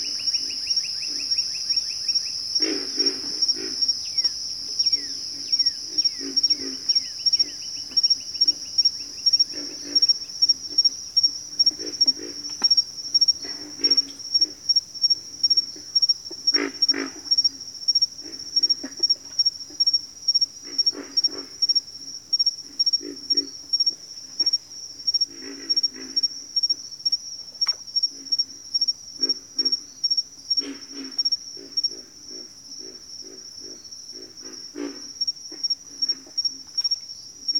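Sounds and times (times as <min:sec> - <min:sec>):
pig frog grunting croaks: 0:00.0 - 0:20.0, 0:20.6 - 0:26.8, 0:30.5 - 0:37.5
shrill insect chorus: 0:00.0 - 0:37.5.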